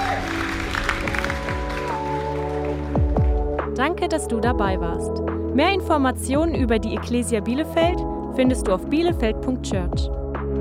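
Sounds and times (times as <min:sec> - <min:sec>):
audience applause: 0:00.0 - 0:03.2
speech: 0:03.8 - 0:10.2.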